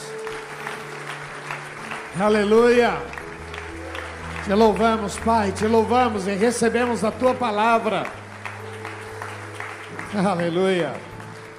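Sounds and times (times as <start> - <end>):
audience applauding: 0.0 - 11.5
speech: 2.2 - 3.2, 4.4 - 8.2, 10.1 - 11.1.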